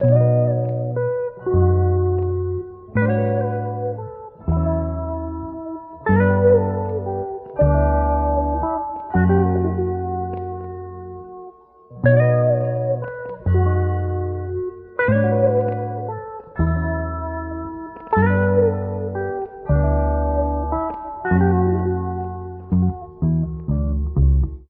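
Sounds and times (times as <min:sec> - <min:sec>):
phonk guitar loops: 0:00.0 - 0:24.6.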